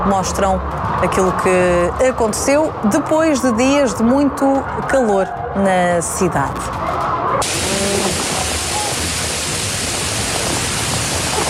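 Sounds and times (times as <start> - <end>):
speech: 0.0 - 7.9
wind in a storm: 0.0 - 11.4
torrential rain in a storm: 7.4 - 11.4.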